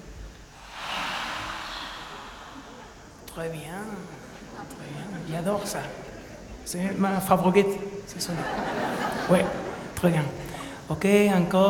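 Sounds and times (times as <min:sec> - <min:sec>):
audience imitating ocean waves with a breathy hissing shush: 0:00.5 - 0:03.4
speech: 0:03.4 - 0:06.1, 0:06.7 - 0:11.6
laughter: 0:08.2 - 0:10.0.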